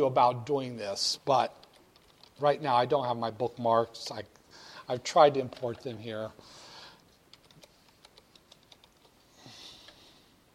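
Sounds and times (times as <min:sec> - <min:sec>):
speech: 0:00.0 - 0:01.7, 0:02.4 - 0:06.6
typing of a web search on a computer keyboard: 0:01.6 - 0:02.4, 0:07.3 - 0:09.2.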